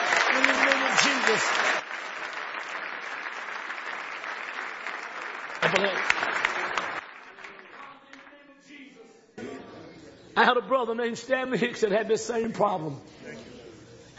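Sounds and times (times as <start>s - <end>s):
audience clapping hands: 0.0s - 8.5s
speech: 1.3s - 1.6s, 10.4s - 13.2s.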